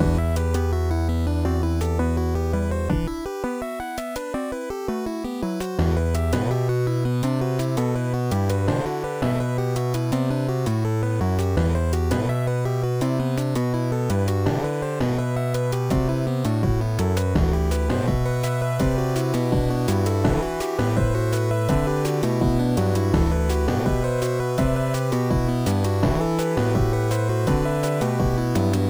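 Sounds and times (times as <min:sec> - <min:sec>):
title screen and game over game music: 0:00.0 - 0:28.8.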